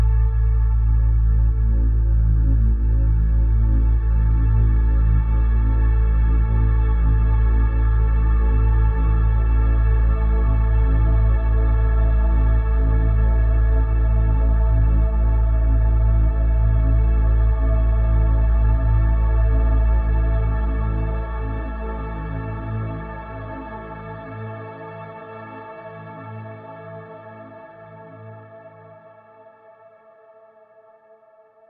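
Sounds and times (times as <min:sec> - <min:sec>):
mysterious drone: 0:00.0 - 0:25.2.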